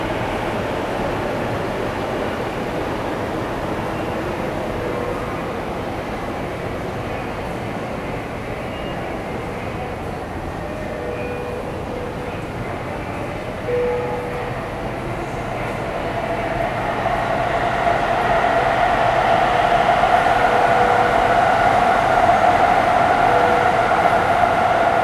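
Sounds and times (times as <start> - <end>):
train rumbling through Takanawa Gateway Station in Tokyo: 0.0 - 25.0
train squealing: 10.8 - 25.0.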